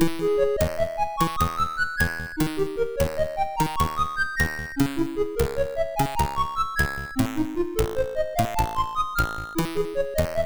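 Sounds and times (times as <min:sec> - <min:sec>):
chiptune loop on SID MOS6581R3 chip: 0:00.0 - 0:10.4.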